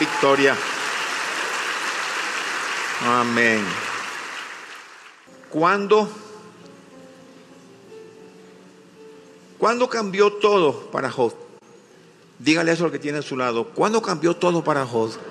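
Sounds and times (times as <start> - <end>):
audience applause: 0.0 - 5.3
speech: 0.2 - 0.7, 3.0 - 3.9, 5.5 - 6.2, 9.6 - 11.4, 12.4 - 15.2.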